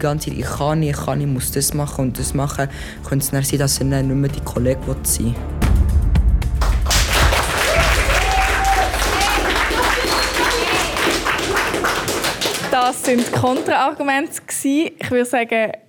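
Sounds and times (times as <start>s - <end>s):
speech: 0.0s - 5.6s, 12.9s - 15.8s
audience applause: 6.6s - 14.0s.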